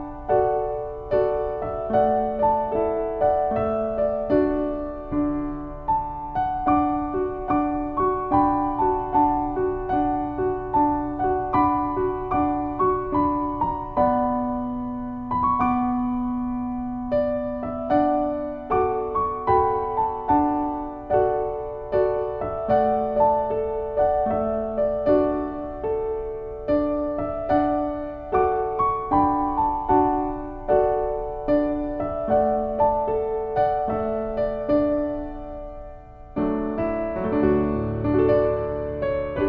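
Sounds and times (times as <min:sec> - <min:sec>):
Irish piano instrumental: 0:00.0 - 0:39.4.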